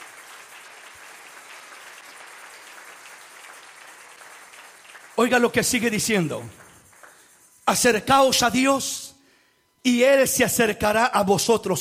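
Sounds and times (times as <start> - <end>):
audience applause: 0.0 - 7.4
speech: 5.2 - 6.6, 7.7 - 9.1, 9.8 - 11.7.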